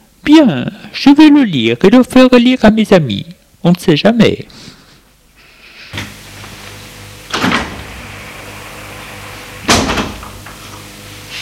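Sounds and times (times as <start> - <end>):
steady low mechanical hum: 0.0 - 11.4
speech: 0.3 - 4.7
door opening: 6.0 - 10.9.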